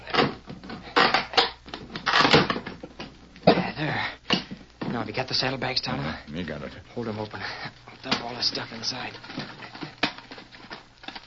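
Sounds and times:
box being pried open, creaking and cracking: 0.0 - 3.5, 5.9 - 11.2
speech: 3.8 - 4.2, 5.0 - 9.6.

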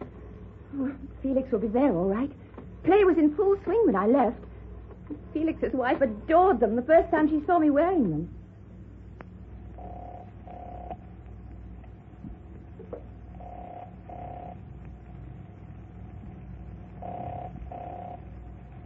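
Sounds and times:
speech: 0.8 - 4.5, 5.1 - 8.4
telephone ringing tone on the line: 9.7 - 11.0, 13.3 - 14.6, 17.0 - 18.4.

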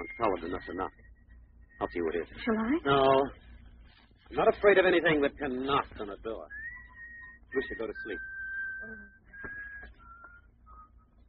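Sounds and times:
speech: 0.0 - 1.1, 1.8 - 3.4, 4.3 - 6.6, 7.5 - 9.2
whistle: 0.0 - 2.4, 6.5 - 11.2.

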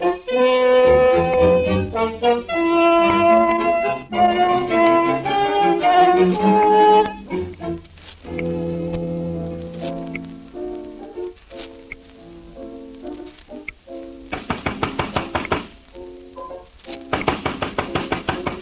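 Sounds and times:
piano music: 0.0 - 18.6
pounding on a door: 14.3 - 15.7, 17.1 - 18.6.

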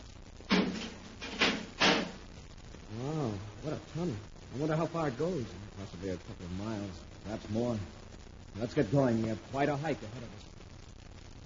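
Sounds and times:
door being closed: 0.5 - 2.2
speech: 3.9 - 8.0, 8.6 - 10.5.

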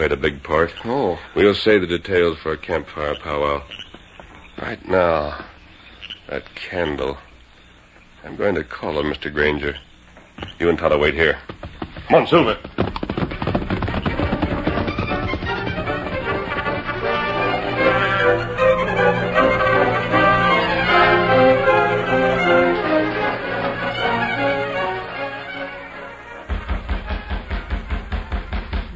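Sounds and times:
speech: 0.0 - 3.8, 4.6 - 5.5, 6.3 - 7.2, 8.2 - 12.9
knocking on a door: 11.5 - 16.9, 26.5 - 28.9
full orchestral music: 14.1 - 28.4.

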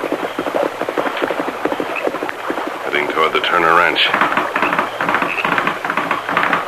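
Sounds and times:
faint hiss: 0.0 - 6.6
horse hooves galloping: 0.0 - 6.6
speech: 3.2 - 4.4.

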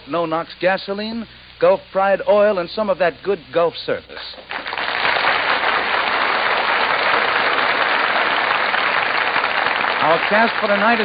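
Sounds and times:
speech: 0.1 - 4.6, 10.0 - 11.0
large theater audience applause: 4.5 - 11.0.

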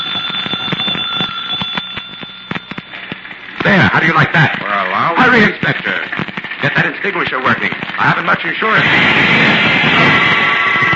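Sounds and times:
electric doorbell ringing: 0.0 - 3.6
speech: 3.6 - 10.2.

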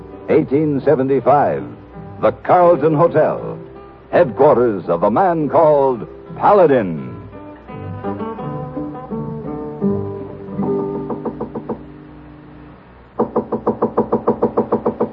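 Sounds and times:
music: 0.0 - 15.1
speech: 0.3 - 7.1
knocks on a hotel room door: 10.9 - 11.9, 13.2 - 15.1.

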